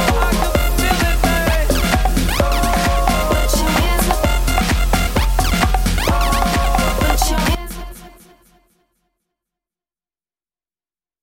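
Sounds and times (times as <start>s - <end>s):
DJ mixing music on decks: 0.0s - 8.2s.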